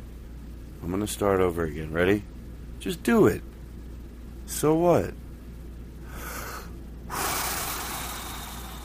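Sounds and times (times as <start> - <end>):
speech: 0.8 - 3.5, 4.5 - 5.2
deep inhale during a guided breathing exercise: 6.0 - 8.8.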